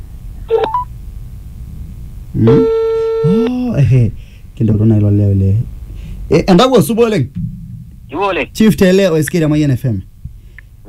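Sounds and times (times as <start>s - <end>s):
low hum: 0.0s - 10.8s
telephone keypad tones as a number is dialed: 0.6s - 0.9s
speech: 2.3s - 2.8s, 3.8s - 10.1s.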